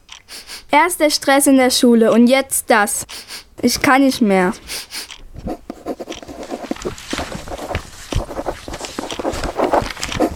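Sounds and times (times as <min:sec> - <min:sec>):
speech: 0:00.7 - 0:05.6
pen scratching on paper writing a letter: 0:05.4 - 0:10.3.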